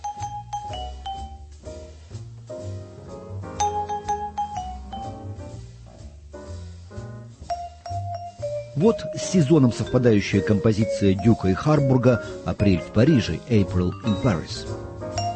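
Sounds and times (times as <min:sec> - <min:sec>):
bright vibraphone notes ringing: 0:00.0 - 0:01.5, 0:03.6 - 0:05.3, 0:07.5 - 0:14.6, 0:15.2 - 0:15.3
speech: 0:08.8 - 0:14.8.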